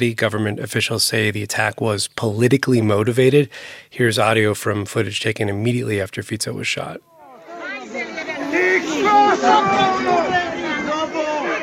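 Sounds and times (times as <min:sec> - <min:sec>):
speech: 0:00.0 - 0:07.1
crowd shouting and yelling in a chaotic scene: 0:07.0 - 0:11.6.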